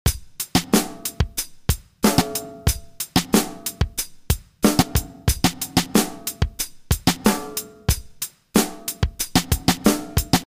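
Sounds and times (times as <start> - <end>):
music beat: 0.1 - 10.4.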